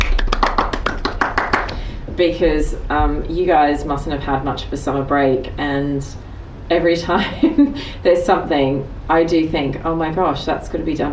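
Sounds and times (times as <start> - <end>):
hand clapping: 0.0 - 1.8
speech: 2.2 - 11.1.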